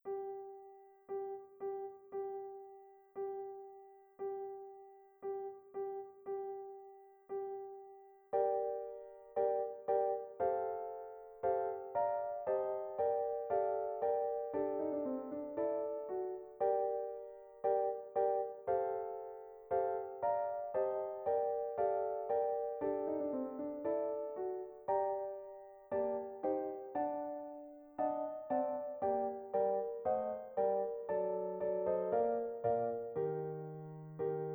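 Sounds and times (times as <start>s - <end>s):
solo piano: 0.0s - 34.5s.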